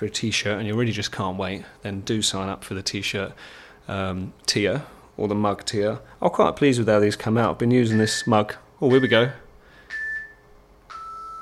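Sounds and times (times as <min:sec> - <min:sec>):
speech: 0:00.0 - 0:09.4
Pomodoro timer app Seconds beeping on iPad: 0:07.9 - 0:11.4.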